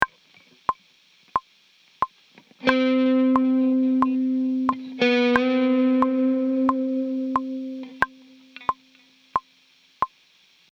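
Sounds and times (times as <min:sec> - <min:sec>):
musical lick: 0:02.6 - 0:09.0.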